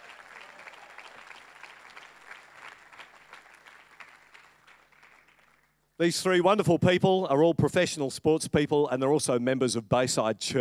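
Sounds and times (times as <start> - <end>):
church audience applauding welcoming a speaker onto the stage: 0.0 - 5.7
speech: 6.0 - 10.5.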